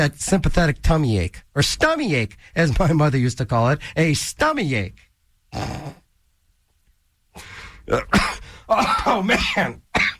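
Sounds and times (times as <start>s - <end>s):
speech: 0.0s - 6.0s, 7.4s - 9.8s
person coughing and choking: 7.9s - 10.1s.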